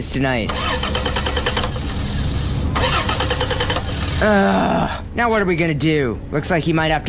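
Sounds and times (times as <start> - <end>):
speech: 0.0 - 1.2, 4.2 - 7.0
car engine cranking but failing to start: 0.5 - 4.4.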